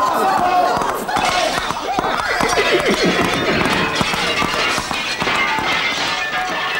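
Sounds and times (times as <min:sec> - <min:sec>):
laughter: 0:00.0 - 0:05.3
pony hooves galloping, comedy sound effect: 0:00.0 - 0:06.7
pony whinnying and neighing: 0:02.1 - 0:04.6.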